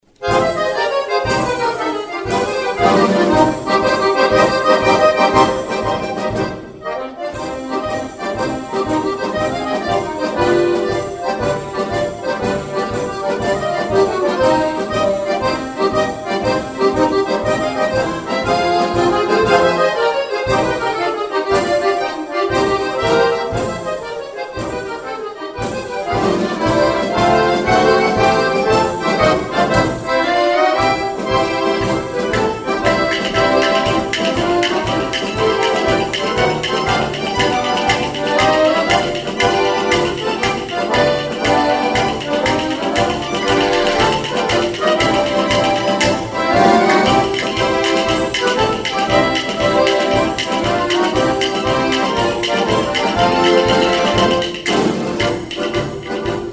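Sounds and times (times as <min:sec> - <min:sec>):
tarantella dance music: 0:00.0 - 0:56.5.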